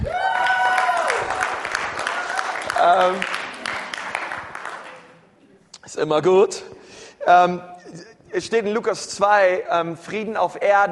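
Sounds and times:
high sliding cheer or whoop: 0.0 - 1.5
audience applause: 0.0 - 5.1
speech: 2.9 - 3.3, 6.0 - 10.9.

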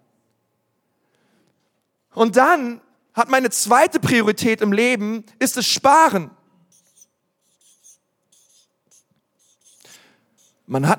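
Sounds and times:
quiet hum: 0.0 - 10.9
speech: 2.1 - 6.4, 10.7 - 10.9
writing on a board during a church sermon: 6.7 - 10.7.

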